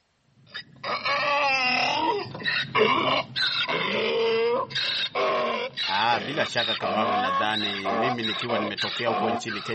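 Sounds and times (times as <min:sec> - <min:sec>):
donkey braying: 0:00.5 - 0:09.7
speech: 0:06.3 - 0:09.7.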